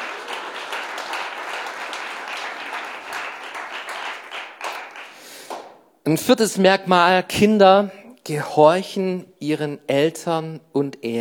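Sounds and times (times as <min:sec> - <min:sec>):
crowd applause: 0:00.0 - 0:05.8
speech: 0:06.1 - 0:11.1.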